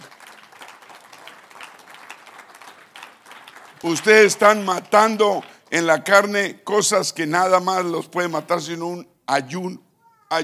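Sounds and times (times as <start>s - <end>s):
audience applause: 0.0s - 5.7s
speech: 3.8s - 10.4s.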